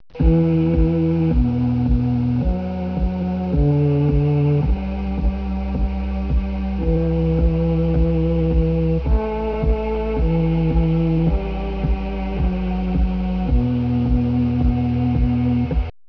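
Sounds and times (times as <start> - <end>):
song: 0.1 - 15.9.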